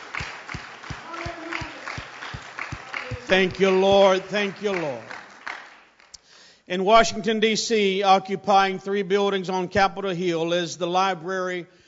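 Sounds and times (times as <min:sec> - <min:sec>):
audience clapping hands: 0:00.0 - 0:06.3
speech: 0:03.3 - 0:05.1, 0:06.7 - 0:11.8.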